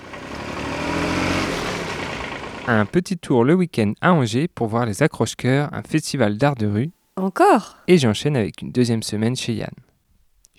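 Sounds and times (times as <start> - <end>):
Massey Ferguson tractor engine manoeuvring on a wine-growing farm: 0.0 - 2.9
speech: 2.7 - 9.9.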